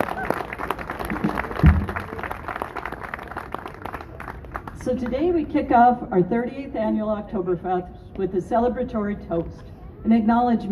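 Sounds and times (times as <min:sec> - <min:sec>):
crowd clapping: 0:00.0 - 0:05.2
speech: 0:01.6 - 0:01.9, 0:04.9 - 0:10.7
loud thump: 0:01.6 - 0:02.1.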